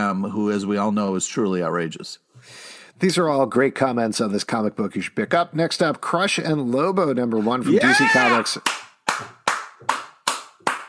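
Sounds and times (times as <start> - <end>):
speech: 0.1 - 9.4
sharp hand claps: 8.6 - 10.8.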